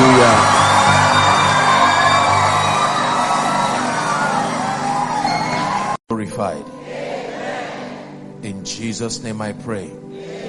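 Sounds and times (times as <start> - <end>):
church congregation applauding and cheering to welcome a preacher: 0.0 - 6.0
speech: 8.7 - 10.2.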